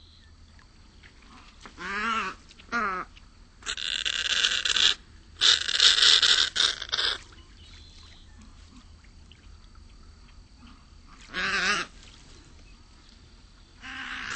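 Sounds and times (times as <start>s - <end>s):
snowy egret giving coarse nasal grating calls: 1.8s - 7.2s, 11.3s - 11.9s, 13.8s - 14.3s.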